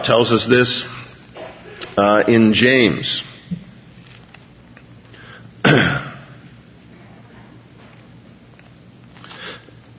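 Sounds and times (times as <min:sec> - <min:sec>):
speech: 0:00.0 - 0:01.0, 0:02.0 - 0:03.3
quiet hum: 0:00.0 - 0:09.9
throat clearing during a scripture reading: 0:05.6 - 0:06.4.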